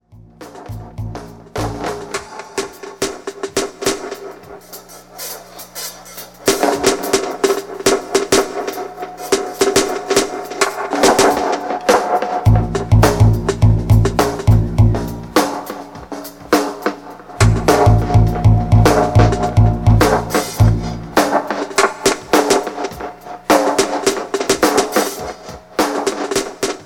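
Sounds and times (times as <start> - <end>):
dub drum beat: 0.0 - 26.8.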